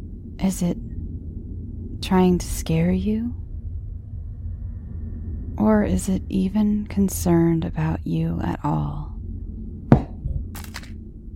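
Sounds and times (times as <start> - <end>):
speech: 0.4 - 0.8, 2.0 - 3.4, 5.6 - 9.1
dull thud: 9.9 - 10.5
sharp crack of something hitting a hard surface: 9.9 - 10.9
clatter and scrape of smaller objects tumbling down: 10.6 - 10.9.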